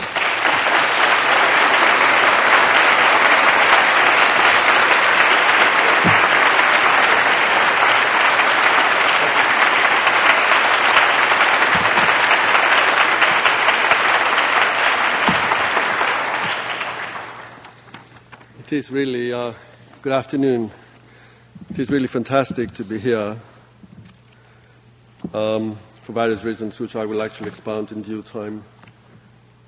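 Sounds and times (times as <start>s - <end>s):
audience applause welcoming architect Demetri Porphyrios at a Whitman College lecture: 0.0s - 18.4s
speech: 18.8s - 20.8s, 21.8s - 23.5s, 25.3s - 28.8s.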